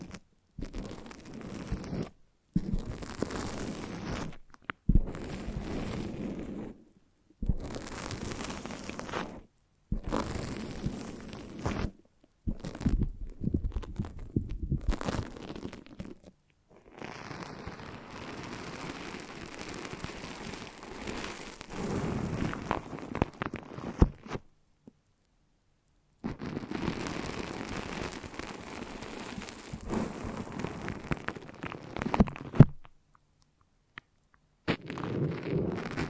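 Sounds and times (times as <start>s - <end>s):
foamy sticky brain massage crackling and squishing: 0.0s - 24.5s, 26.2s - 33.0s, 34.0s - 36.0s.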